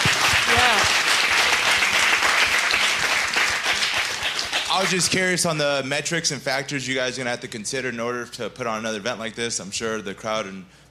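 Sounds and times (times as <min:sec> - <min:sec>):
audience round of applause: 0:00.0 - 0:05.2
speech: 0:04.8 - 0:10.8.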